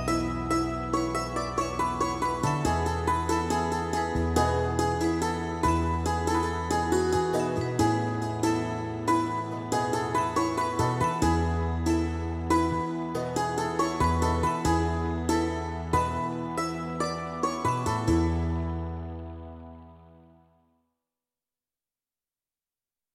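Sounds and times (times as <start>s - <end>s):
santoor: 0.0s - 20.4s.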